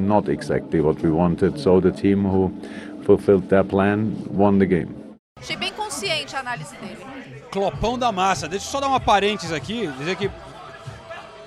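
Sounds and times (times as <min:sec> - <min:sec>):
speech: 0:00.0 - 0:05.7, 0:06.3 - 0:10.5
football fans chattering: 0:05.4 - 0:11.4.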